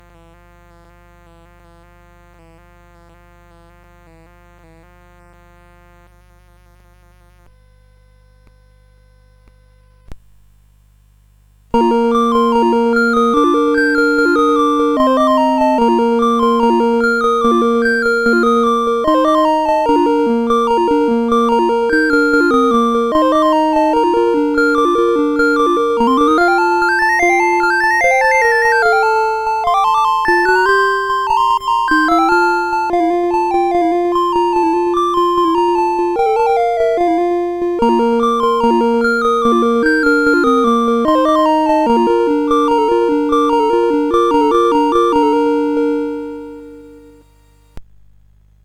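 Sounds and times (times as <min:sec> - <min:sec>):
Casio CSG8580R5 keyboard song: 0:11.8 - 0:47.8.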